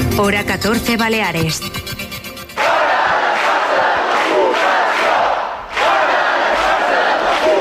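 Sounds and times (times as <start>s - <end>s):
speech: 0.2s - 1.9s
protest crowd chanting slogans: 2.6s - 7.5s.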